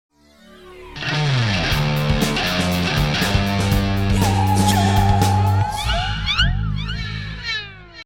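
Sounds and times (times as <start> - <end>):
theme sting: 0.2 - 7.4.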